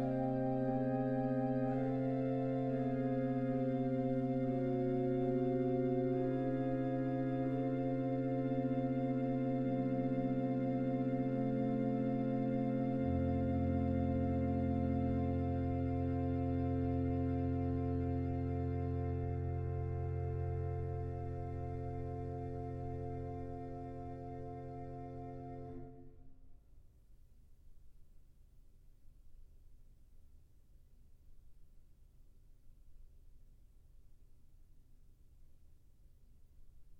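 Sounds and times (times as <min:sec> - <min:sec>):
South African organ music: 0:00.0 - 0:26.2.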